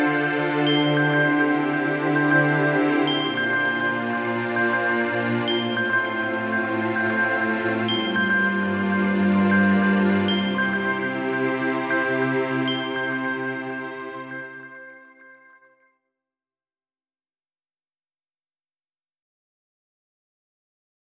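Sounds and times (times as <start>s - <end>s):
strings: 0.0s - 15.3s.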